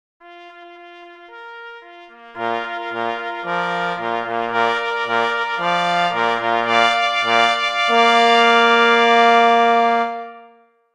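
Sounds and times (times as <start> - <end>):
fanfare: 0.2 - 10.7.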